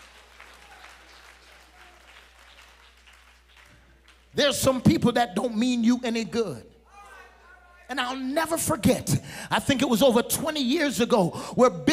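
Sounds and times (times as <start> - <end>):
audience clapping hands: 0.0 - 4.8
speech: 4.4 - 6.7, 7.9 - 11.9.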